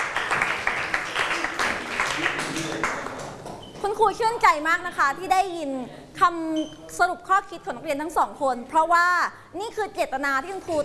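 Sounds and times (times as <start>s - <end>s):
audience applause: 0.0s - 3.2s
speech: 4.0s - 10.8s.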